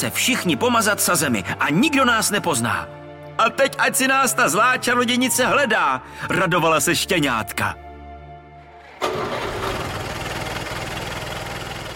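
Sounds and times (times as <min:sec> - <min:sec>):
speech: 0:00.0 - 0:07.8, 0:09.0 - 0:09.5
car engine starting and idling: 0:08.7 - 0:11.9.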